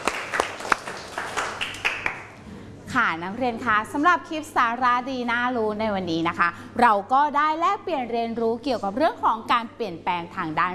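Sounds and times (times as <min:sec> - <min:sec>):
classroom applause: 0:00.0 - 0:02.4
speech: 0:03.0 - 0:10.7.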